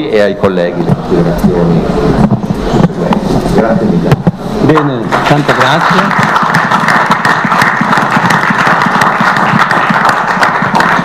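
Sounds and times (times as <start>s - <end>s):
speech: 0.0s - 2.4s, 3.6s - 6.4s
audience applause: 5.1s - 11.0s.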